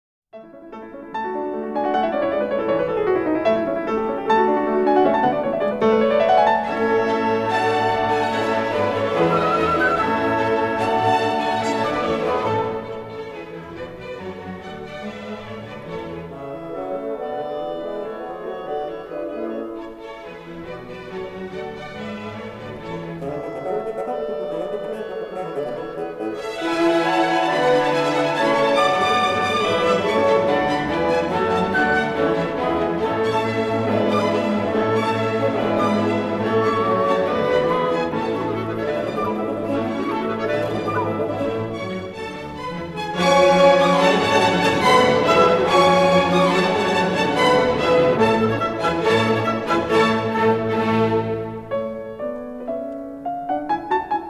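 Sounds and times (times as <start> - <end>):
piano concerto: 0.4 - 54.2
laughter: 6.7 - 13.0, 22.6 - 50.3.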